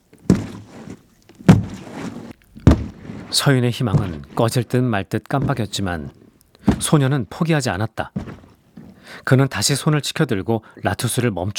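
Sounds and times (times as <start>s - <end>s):
giant creature footsteps echoing in a cave: 0.3s - 4.6s, 5.4s - 7.0s
speech: 3.3s - 6.2s, 6.8s - 8.3s, 9.0s - 11.5s.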